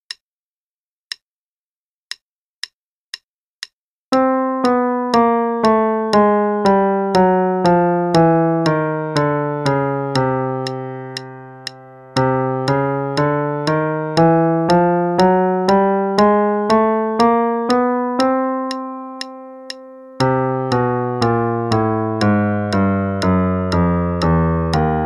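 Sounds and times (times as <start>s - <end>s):
chromatic scale: 4.1s - 25.0s.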